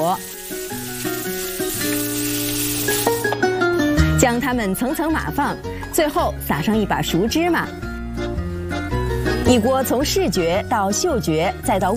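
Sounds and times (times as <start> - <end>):
speech: 0.0 - 0.6, 4.3 - 8.3, 9.5 - 11.9
shrimp stir-frying in a wok: 0.0 - 3.4
music: 0.0 - 11.9.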